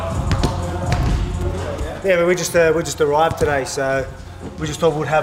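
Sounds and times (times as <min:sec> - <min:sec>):
Australian football being bounced and passed: 0:00.2 - 0:02.0, 0:03.2 - 0:03.8
speech: 0:02.1 - 0:05.2.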